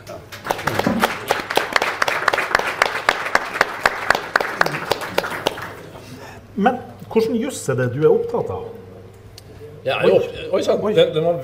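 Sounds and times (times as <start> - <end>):
live audience applause: 0.3 - 6.0
speech: 6.6 - 8.8, 9.8 - 11.4.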